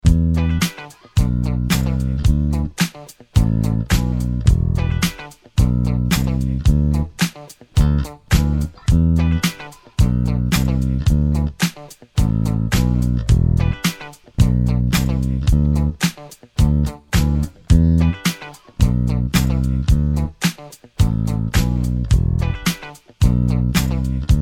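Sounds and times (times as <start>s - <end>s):
bass: 0.0s - 2.8s, 3.4s - 7.2s, 7.8s - 24.4s.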